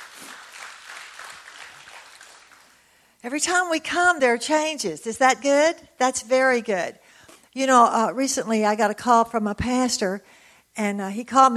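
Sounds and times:
audience clapping: 0:00.0 - 0:02.9
speech: 0:03.2 - 0:07.0, 0:07.6 - 0:11.5.

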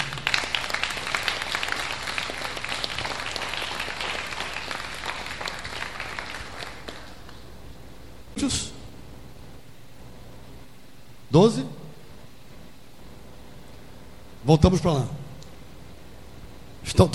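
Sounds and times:
audience applause: 0:00.0 - 0:07.5
speech: 0:08.4 - 0:08.7, 0:11.4 - 0:11.8, 0:14.5 - 0:15.2, 0:16.9 - 0:17.1.

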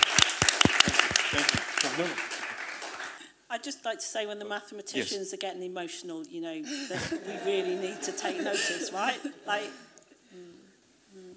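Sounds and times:
audience applause: 0:00.0 - 0:03.2
speech: 0:01.3 - 0:02.3, 0:03.6 - 0:10.5
laughter: 0:06.9 - 0:09.7.

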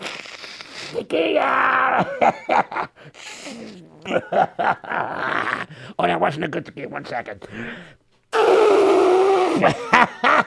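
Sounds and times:
nose blowing: 0:00.0 - 0:01.1, 0:03.2 - 0:04.1, 0:08.3 - 0:09.8
speech: 0:00.9 - 0:09.0, 0:09.6 - 0:10.4.

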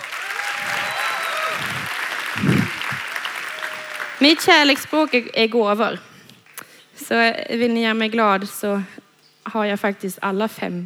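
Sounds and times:
audience applause: 0:00.0 - 0:05.3
speech: 0:04.2 - 0:06.1, 0:07.1 - 0:10.8.

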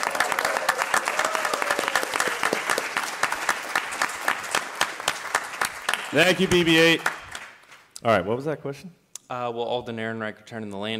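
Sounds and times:
audience applause: 0:00.0 - 0:07.7
speech: 0:06.1 - 0:07.2, 0:08.0 - 0:10.9.

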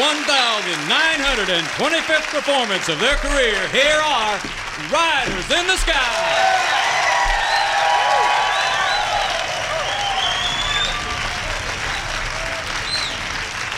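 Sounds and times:
large live audience applause: 0:00.0 - 0:13.7
speech: 0:00.7 - 0:06.8
cheers and whoops: 0:06.1 - 0:13.5
rising whistles: 0:07.3 - 0:13.3.

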